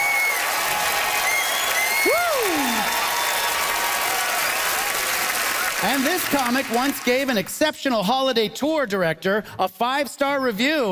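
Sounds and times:
audience applauding and cheering: 0:00.0 - 0:07.5
speech: 0:02.0 - 0:03.0, 0:05.8 - 0:10.9.

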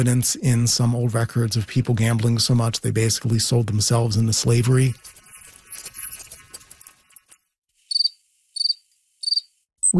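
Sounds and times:
speech: 0:00.0 - 0:05.2
scratchy jumbled noise: 0:00.0 - 0:07.3
crickets chirping: 0:07.9 - 0:09.6.

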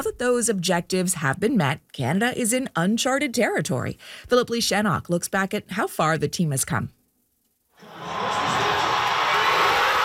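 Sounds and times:
speech: 0:00.1 - 0:07.0
crowd cheering at a watch party in Toronto: 0:07.8 - 0:10.0.

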